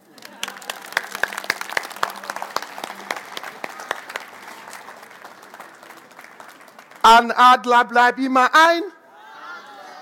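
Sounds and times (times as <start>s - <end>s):
audience applause: 0.0s - 7.3s
speech: 7.1s - 8.9s.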